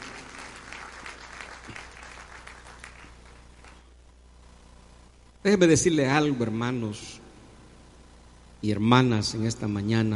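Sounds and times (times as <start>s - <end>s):
audience clapping: 0.0s - 4.0s
speech: 5.4s - 7.2s, 8.6s - 10.1s.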